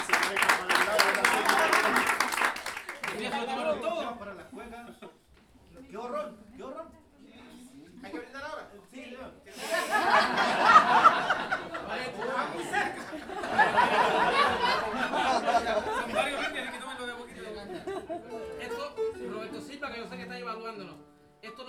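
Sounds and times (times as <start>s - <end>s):
audience clapping at an improvised verse performance at a jazz school: 0.0s - 4.0s, 10.2s - 16.8s
people talking: 0.0s - 5.1s, 5.8s - 21.6s
laughter: 0.0s - 5.2s, 9.5s - 19.4s.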